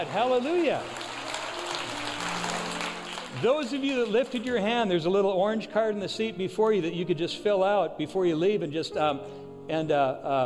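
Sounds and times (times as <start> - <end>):
speech: 0.0 - 1.0, 3.3 - 10.4
audience clapping: 0.0 - 4.9.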